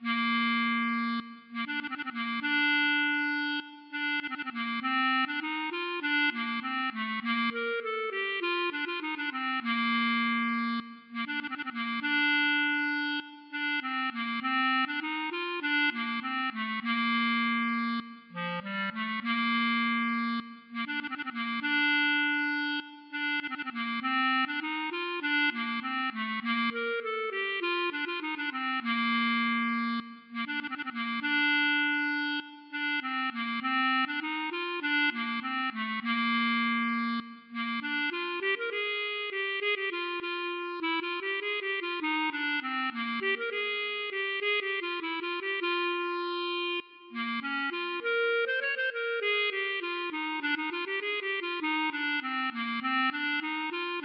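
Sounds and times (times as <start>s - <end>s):
klezmer bulgar music: 0.0s - 54.0s.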